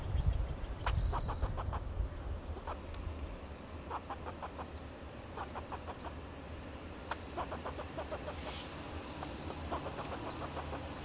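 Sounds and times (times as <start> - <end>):
faint high bird chirps: 0.0 - 11.0
low steady hum: 0.0 - 11.0
fox squirrel chucking: 0.8 - 1.9, 3.9 - 4.8, 5.4 - 6.2, 7.0 - 8.6, 9.2 - 11.0.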